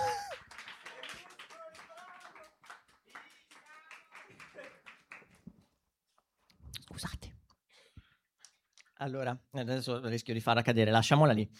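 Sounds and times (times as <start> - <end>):
applause: 0.0 - 5.5
speech: 9.0 - 11.5.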